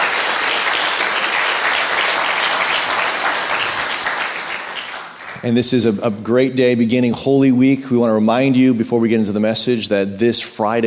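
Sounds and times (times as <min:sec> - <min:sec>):
audience round of applause: 0:00.0 - 0:05.6
speech: 0:05.4 - 0:10.8.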